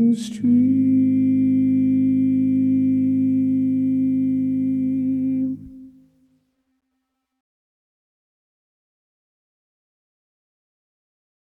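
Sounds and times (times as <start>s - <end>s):
tenor singing: 0.0s - 6.0s.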